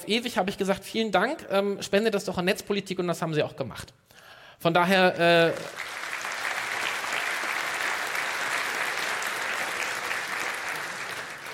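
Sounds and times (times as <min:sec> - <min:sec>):
speech: 0:00.0 - 0:05.9
audience applause: 0:05.6 - 0:11.5.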